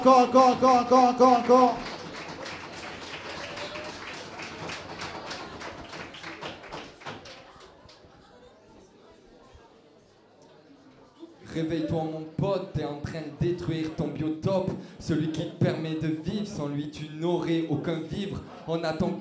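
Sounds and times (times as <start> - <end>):
speech: 0.0 - 2.0, 11.6 - 19.1
crowd audience applause: 0.0 - 8.0.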